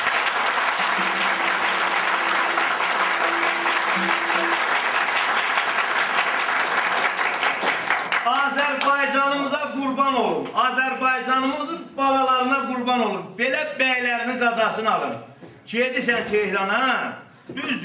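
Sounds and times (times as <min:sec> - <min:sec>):
audience clapping for a guest: 0:00.0 - 0:09.2
speech: 0:10.1 - 0:17.8.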